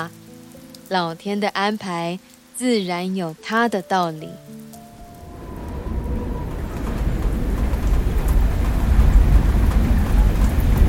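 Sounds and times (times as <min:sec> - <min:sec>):
speech: 0:00.0 - 0:00.2, 0:00.9 - 0:04.6
heavy rain drumming on a tin roof: 0:00.0 - 0:10.8.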